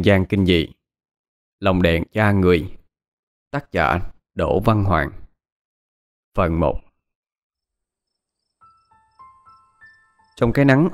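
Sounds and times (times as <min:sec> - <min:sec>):
speech: 0:00.0 - 0:00.8, 0:01.6 - 0:02.8, 0:03.5 - 0:05.2, 0:06.4 - 0:06.8, 0:10.4 - 0:10.9
cicadas buzzing in summer countryside: 0:07.8 - 0:10.5.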